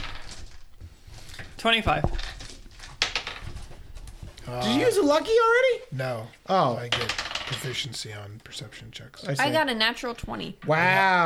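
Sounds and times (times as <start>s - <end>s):
dice being rolled: 0.0s - 0.6s, 2.0s - 3.8s, 6.9s - 7.7s
speech: 1.6s - 2.3s, 4.5s - 11.2s.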